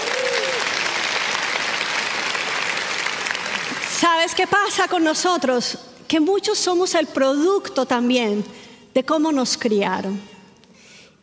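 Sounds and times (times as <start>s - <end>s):
audience applause: 0.0s - 4.0s
speech: 4.0s - 10.3s.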